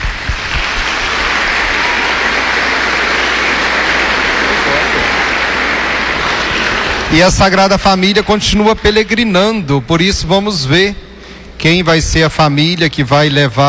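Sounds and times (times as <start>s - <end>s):
audience applause: 0.0s - 8.1s
speech: 7.1s - 13.6s.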